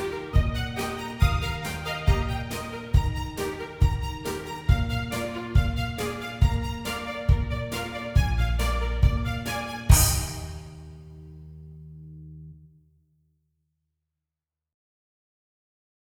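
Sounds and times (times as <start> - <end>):
high interval study: 0.0 - 11.0.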